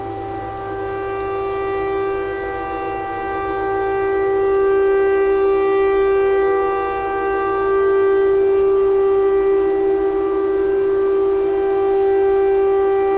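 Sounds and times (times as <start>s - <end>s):
clarinet thread noise: 0.0s - 13.1s
tornado siren: 0.0s - 13.1s.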